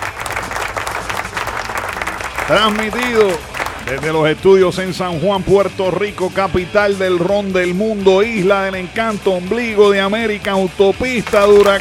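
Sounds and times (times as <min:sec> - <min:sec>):
studio applause played on air for a radio show: 0:00.0 - 0:04.7, 0:11.0 - 0:11.7
speech: 0:02.5 - 0:11.7.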